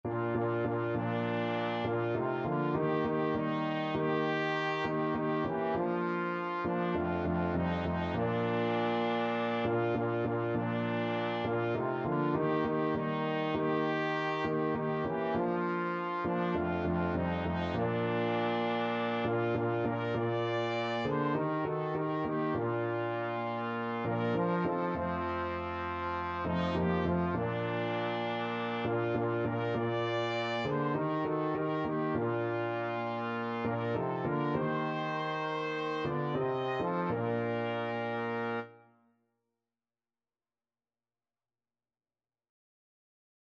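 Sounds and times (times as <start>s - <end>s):
trumpet and trombone duet playing a hymn: 0.0s - 38.8s.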